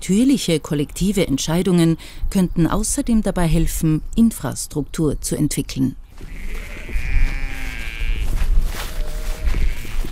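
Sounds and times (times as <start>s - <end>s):
speech: 0.0s - 7.0s
sheep bleating in a field: 6.2s - 10.1s.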